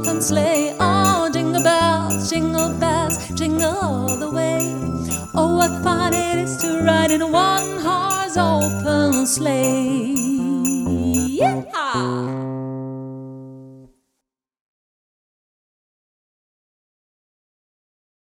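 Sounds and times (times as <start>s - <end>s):
Christmas song: 0.0s - 12.2s.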